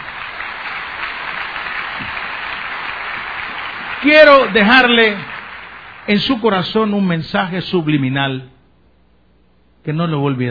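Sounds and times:
audience applause: 0:00.0 - 0:07.0
speech: 0:04.0 - 0:05.3, 0:06.1 - 0:08.5, 0:09.8 - 0:10.4.

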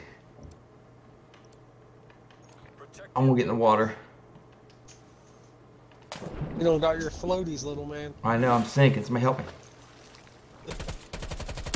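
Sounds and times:
speech: 0:02.9 - 0:04.1, 0:06.6 - 0:09.6
video game submachine gun fire: 0:10.7 - 0:11.7.

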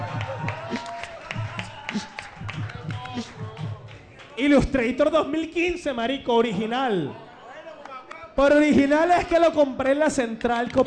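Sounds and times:
applause: 0:00.0 - 0:04.4
speech: 0:04.4 - 0:07.2, 0:08.4 - 0:10.8.

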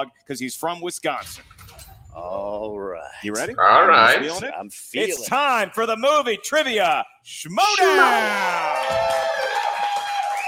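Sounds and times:
speech: 0:00.0 - 0:09.4
crowd cheering: 0:07.6 - 0:10.4.

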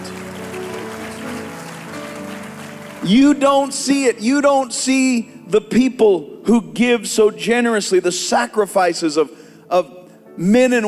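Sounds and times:
audience hand clapping in praise: 0:00.0 - 0:04.1
speech: 0:03.0 - 0:10.8.

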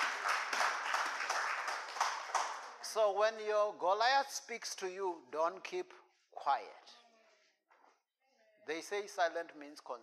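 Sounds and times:
audience clapping hands: 0:00.0 - 0:03.0
speech: 0:02.9 - 0:07.0, 0:08.7 - 0:10.0.

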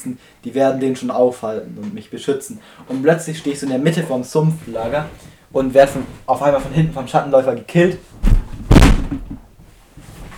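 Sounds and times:
speech: 0:00.0 - 0:08.3
knee knocking keyboard tray out under table: 0:08.2 - 0:09.5.

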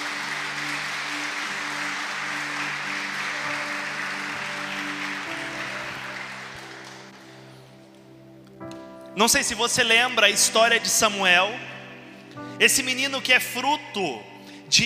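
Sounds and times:
audience applauding: 0:00.0 - 0:07.7
speech: 0:09.2 - 0:11.8, 0:12.6 - 0:14.8.

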